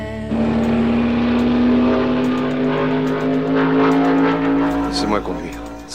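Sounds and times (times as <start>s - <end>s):
stock car engine revving: 0.2s - 5.9s.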